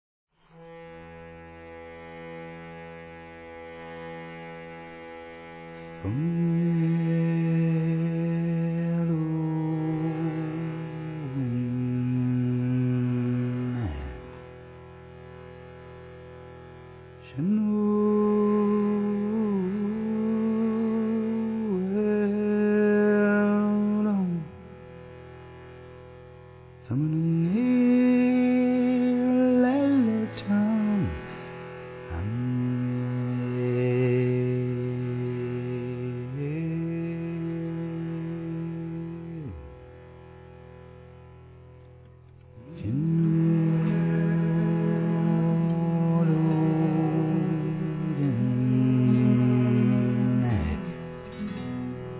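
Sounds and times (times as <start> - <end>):
person singing: 6.0 - 14.4, 17.2 - 24.8, 26.9 - 31.5, 32.1 - 39.8, 42.6 - 52.1.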